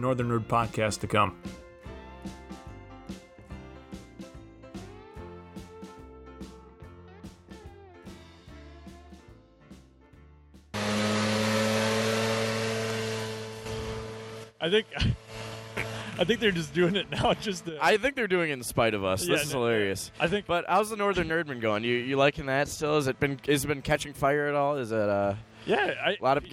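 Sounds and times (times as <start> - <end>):
speech: 0.0 - 1.6, 14.6 - 15.2, 16.2 - 26.5
lawnmower running: 10.8 - 18.0
laughter: 14.6 - 15.2, 15.8 - 18.1, 19.2 - 20.5, 25.6 - 26.5.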